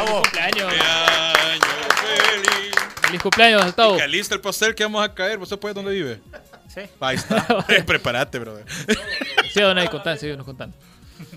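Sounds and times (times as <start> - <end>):
rhythmic clapping: 0.0 - 4.7, 8.9 - 10.2
speech: 0.1 - 1.0, 3.2 - 11.3
laughter: 6.3 - 10.1.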